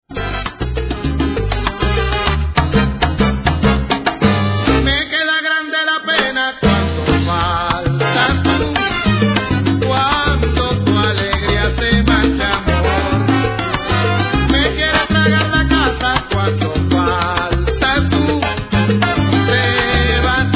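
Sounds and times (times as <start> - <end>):
salsa music: 0.0 - 20.5.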